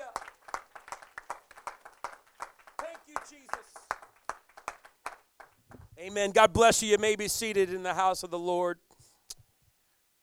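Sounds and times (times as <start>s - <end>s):
people clapping hands: 0.0s - 5.9s
speech: 6.0s - 8.9s.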